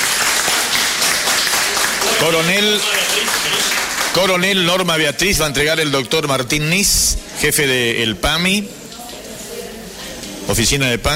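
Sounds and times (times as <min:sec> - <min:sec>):
applause for a new retiree: 0:00.0 - 0:04.7
speech: 0:02.2 - 0:08.8, 0:10.5 - 0:11.1.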